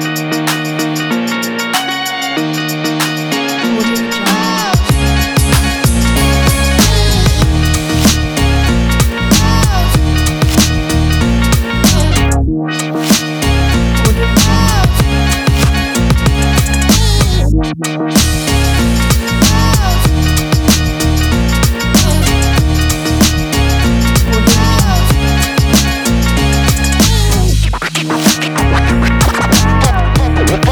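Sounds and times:
lifestyle hip hop music: 0.0 - 30.7.

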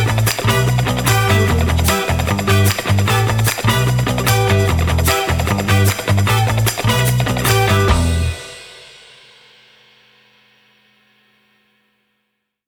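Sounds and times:
funk music: 0.0 - 8.9.

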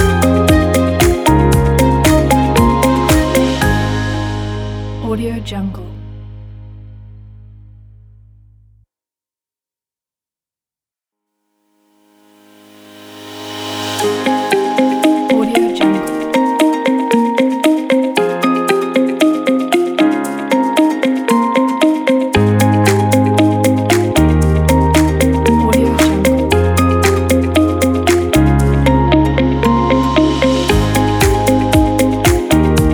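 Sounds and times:
uplifting corporate motivational music: 0.0 - 5.8, 13.9 - 32.9.

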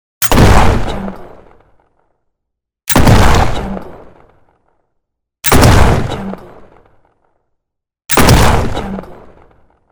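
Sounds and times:
shotgun firing: 0.2 - 1.7, 2.9 - 4.5, 5.5 - 7.2, 8.1 - 9.8.

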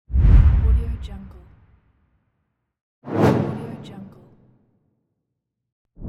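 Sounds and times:
whoosh: 0.1 - 1.5, 3.1 - 3.9.

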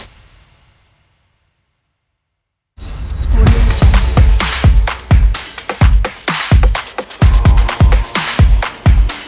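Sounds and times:
trailer drums: 2.8 - 9.0.

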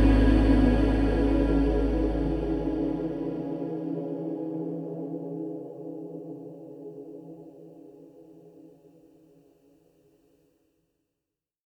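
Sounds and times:
drone: 0.0 - 4.2.

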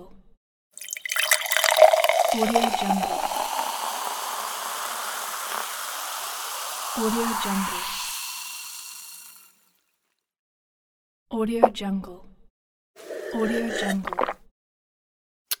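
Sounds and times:
soda: 0.8 - 9.6, 13.4 - 14.4.

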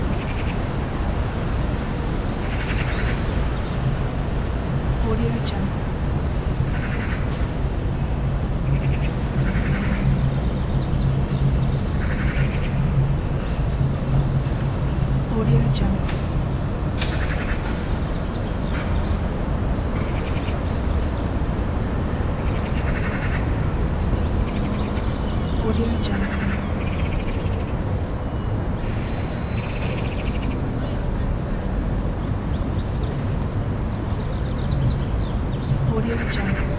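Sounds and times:
busy city street ambience: 0.0 - 36.7.

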